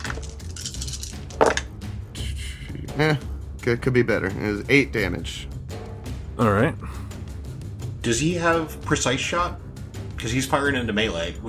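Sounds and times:
dice rattling on hard surface: 0.0 - 1.7
speech: 3.0 - 5.6, 6.4 - 6.9, 8.0 - 9.6, 10.2 - 11.4.

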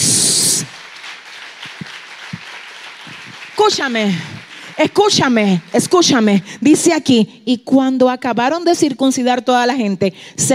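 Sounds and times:
audience applause: 0.0 - 6.4
speech: 3.6 - 10.5.

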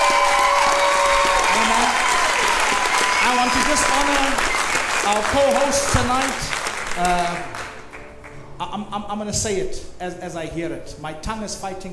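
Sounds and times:
audience applause at a church gathering: 0.0 - 8.3
speech: 3.8 - 7.6, 8.6 - 11.9.

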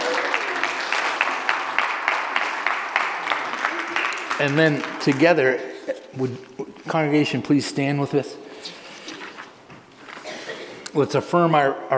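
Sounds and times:
audience applause: 0.0 - 5.6
speech: 4.4 - 8.8, 11.0 - 11.9.

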